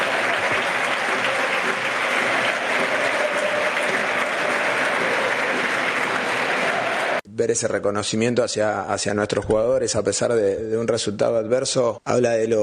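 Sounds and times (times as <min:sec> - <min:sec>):
large stadium crowd applauding: 0:00.0 - 0:07.2
speech: 0:07.4 - 0:12.6.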